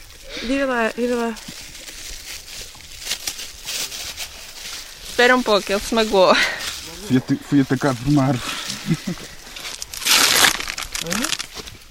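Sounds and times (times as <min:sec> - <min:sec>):
speech: 0:00.4 - 0:01.6, 0:05.2 - 0:09.3
sticky tape ripping while a small wound is tended: 0:09.7 - 0:11.7.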